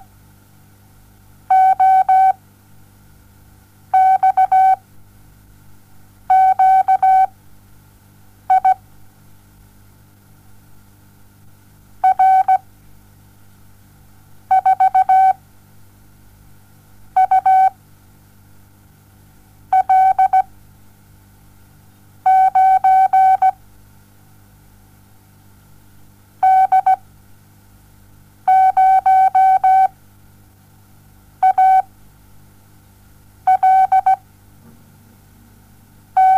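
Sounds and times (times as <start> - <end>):
morse code beeps: 1.5 - 2.4, 4.0 - 4.8, 6.3 - 7.3, 8.5 - 8.8, 12.0 - 12.6, 14.5 - 15.4, 17.2 - 17.8, 19.8 - 20.5, 22.3 - 23.6, 26.4 - 27.0, 28.5 - 29.9, 31.4 - 31.8, 33.5 - 34.2, 36.2 - 36.3.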